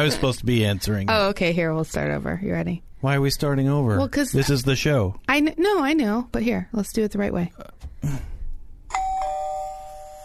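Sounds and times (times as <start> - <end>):
speech: 0.0 - 8.3
doorbell chiming: 8.9 - 10.2.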